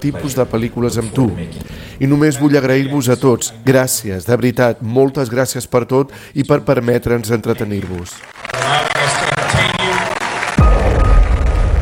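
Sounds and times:
speech: 0.0s - 8.8s
audience ovation applause: 7.8s - 11.7s.

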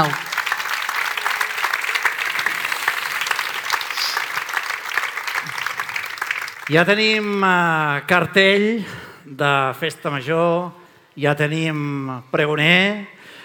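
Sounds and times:
audience applause: 0.0s - 7.8s
speech: 6.7s - 13.4s.

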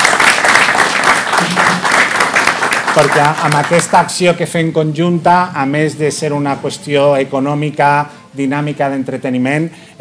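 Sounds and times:
applause for a hospitality school and institute: 0.0s - 4.2s
speech: 3.0s - 9.9s.

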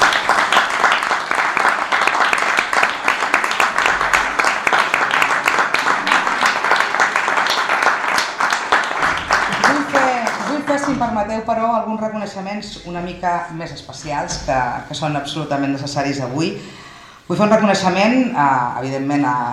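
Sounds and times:
audience applause: 0.0s - 10.9s
speech: 11.2s - 19.5s.

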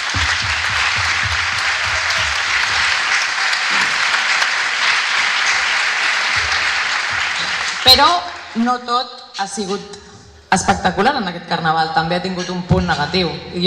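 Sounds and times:
applause: 0.0s - 8.6s
speech: 7.9s - 13.6s.

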